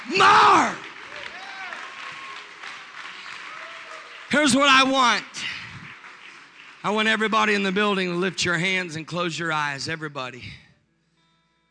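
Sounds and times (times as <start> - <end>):
audience clapping hands: 0.0 - 9.4
speech: 4.4 - 5.5, 6.8 - 10.6.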